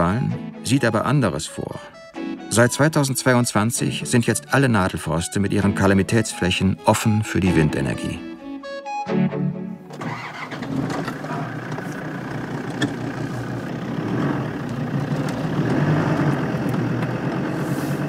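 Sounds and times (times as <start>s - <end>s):
speech: 0.1s - 8.3s
car engine starting and driving off: 9.8s - 18.0s.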